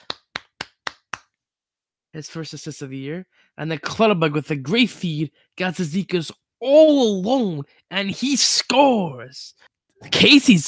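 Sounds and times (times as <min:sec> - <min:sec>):
applause: 0:00.0 - 0:01.2
speech: 0:02.2 - 0:10.6.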